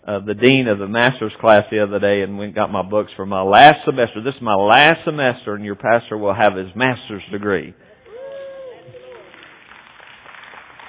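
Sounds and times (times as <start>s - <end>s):
speech: 0.0s - 7.9s
audience clapping: 8.0s - 10.8s.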